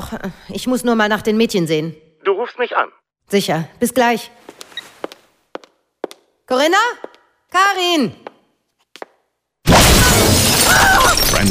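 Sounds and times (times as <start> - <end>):
speech: 0.0 - 4.5, 6.5 - 8.2
conservatory windows shattering: 9.7 - 11.4.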